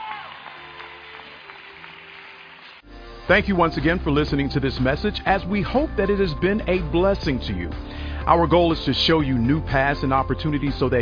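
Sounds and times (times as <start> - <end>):
crowd cheering with scattered shouts: 0.0 - 1.8
crowd clapping: 0.0 - 2.9
speech: 3.3 - 11.0.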